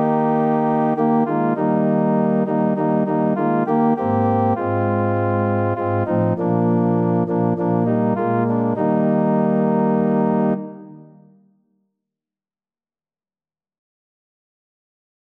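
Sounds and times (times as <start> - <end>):
organ: 0.0 - 11.0.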